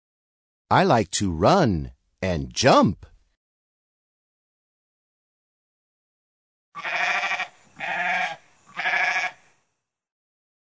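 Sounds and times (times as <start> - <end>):
speech: 0.7 - 3.1
goat bleating: 6.8 - 9.4.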